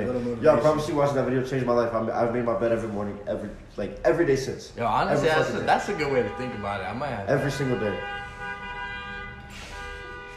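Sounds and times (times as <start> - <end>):
traffic noise outside: 0.0 - 10.3
speech: 0.1 - 8.2
car horn blaring in traffic outside: 5.6 - 10.3.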